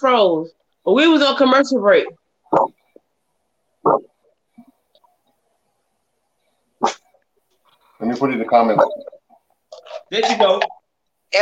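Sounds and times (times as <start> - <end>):
speech: 0.0 - 2.8, 8.0 - 9.1, 10.1 - 11.4
dog barking: 2.5 - 2.8, 3.8 - 4.1, 6.8 - 7.0, 8.6 - 9.2.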